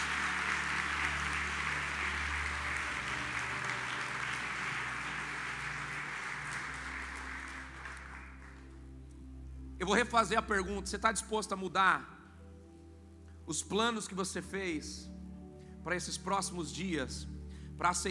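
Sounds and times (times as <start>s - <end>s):
audience applauding: 0.0s - 8.8s
speech: 9.8s - 12.2s, 13.5s - 15.2s, 15.8s - 18.0s.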